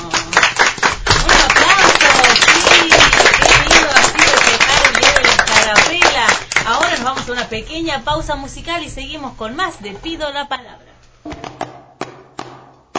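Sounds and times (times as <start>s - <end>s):
crowd applauding: 0.0s - 7.3s
speech: 7.5s - 10.8s.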